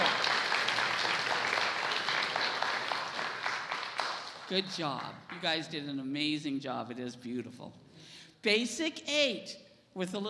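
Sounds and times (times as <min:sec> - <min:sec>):
crowd applauding: 0:00.0 - 0:05.5
speech: 0:04.5 - 0:07.8, 0:08.4 - 0:10.2.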